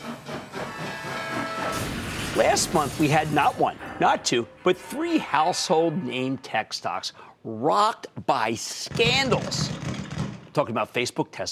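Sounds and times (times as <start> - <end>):
steam train sound effect: 0.0 - 3.0
speech: 2.4 - 9.8, 10.6 - 11.5.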